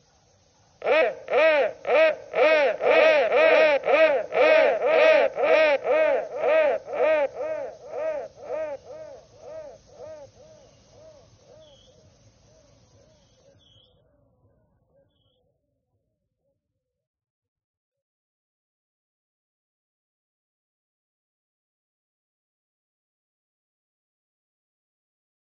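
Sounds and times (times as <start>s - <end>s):
crow thread noise: 0.8s - 13.6s.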